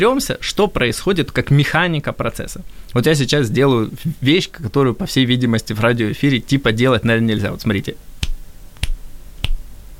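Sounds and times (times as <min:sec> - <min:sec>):
speech: 0:00.0 - 0:08.1
finger snaps: 0:08.2 - 0:09.6.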